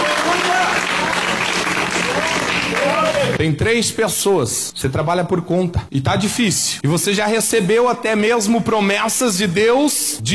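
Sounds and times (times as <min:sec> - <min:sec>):
audience clapping: 0:00.0 - 0:03.4
speech: 0:03.4 - 0:10.3.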